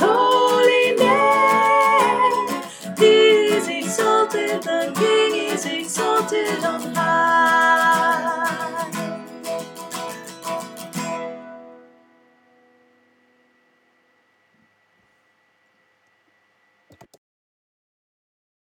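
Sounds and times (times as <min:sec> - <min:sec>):
soprano singing: 0:00.0 - 0:09.2.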